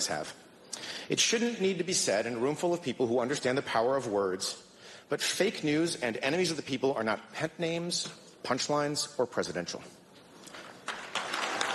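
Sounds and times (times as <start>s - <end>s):
speech: 0.0s - 0.5s, 1.1s - 10.0s
audience applause: 10.9s - 11.7s.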